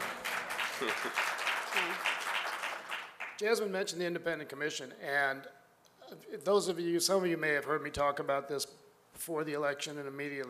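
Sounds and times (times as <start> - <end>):
audience applause: 0.0 - 3.4
speech: 0.8 - 2.2, 3.4 - 10.4.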